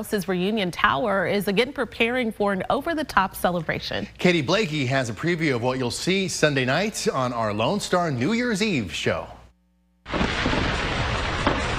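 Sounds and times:
speech: 0.0s - 9.4s
fireworks exploding: 10.1s - 11.7s.

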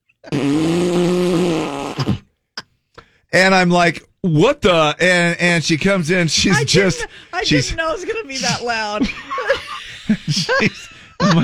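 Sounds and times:
voice imitating a loud long fart: 0.2s - 2.7s
speech: 0.3s - 0.9s, 3.3s - 11.4s
laughter: 6.3s - 11.4s.

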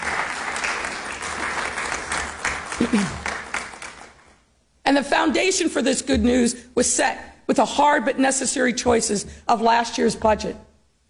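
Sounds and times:
audience applause: 0.0s - 4.3s
speech: 2.8s - 3.3s, 4.9s - 10.7s.

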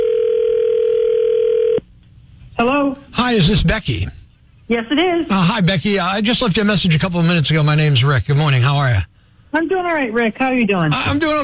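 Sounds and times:
telephone dial tone: 0.0s - 1.8s
speech: 3.3s - 11.4s.

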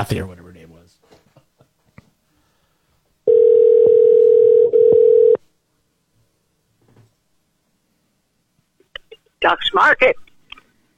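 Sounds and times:
speech: 0.0s - 0.4s, 9.4s - 10.2s
telephone ringback tone while calling back: 3.3s - 5.4s.

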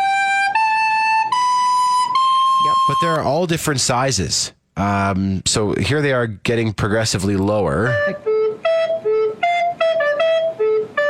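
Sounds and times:
alto recorder notes: 0.0s - 3.5s, 7.4s - 11.0s
speech: 2.9s - 8.3s.

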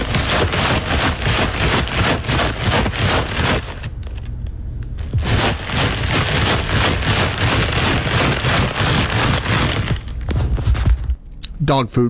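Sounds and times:
bag of tortilla chips being shaken: 0.0s - 4.3s, 5.0s - 11.1s.

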